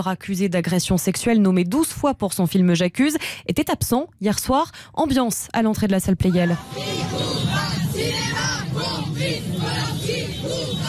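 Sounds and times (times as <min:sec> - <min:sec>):
speech: 0:00.0 - 0:09.5
crowd of protesters outside Salle Pleyel shouting and chanting: 0:06.3 - 0:10.8.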